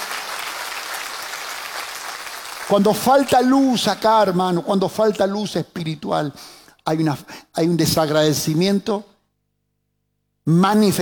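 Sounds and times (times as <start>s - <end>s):
audience applause during a sermon: 0.0s - 3.4s
speech: 2.7s - 9.1s, 10.4s - 11.0s.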